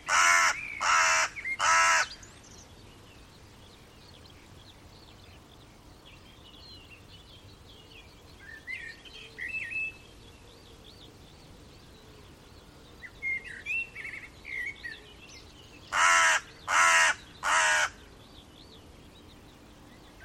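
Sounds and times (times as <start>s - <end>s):
bird giving loud harsh crow-like caws: 0.1s - 2.2s, 15.9s - 18.0s.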